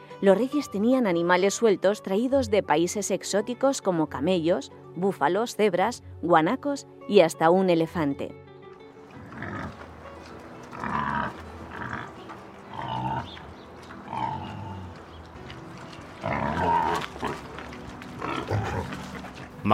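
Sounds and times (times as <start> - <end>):
speech: 0.2 - 8.4
wild boars grunting while eating grain: 9.0 - 19.7
wild boar squeals: 9.1 - 9.9, 10.6 - 14.9, 16.2 - 17.5, 18.2 - 19.4.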